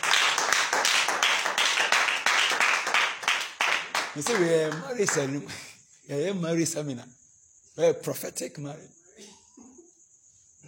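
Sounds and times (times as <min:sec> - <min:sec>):
crowd clapping hands: 0:00.0 - 0:05.6
speech: 0:04.2 - 0:07.2, 0:07.8 - 0:09.0.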